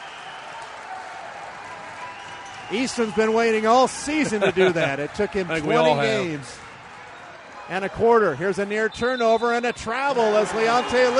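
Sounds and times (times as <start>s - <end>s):
basketball crowd at a Galesburg game cheering after a dunk: 0.0s - 11.1s
speech: 2.7s - 6.7s, 7.7s - 11.1s
laughter: 3.9s - 6.2s.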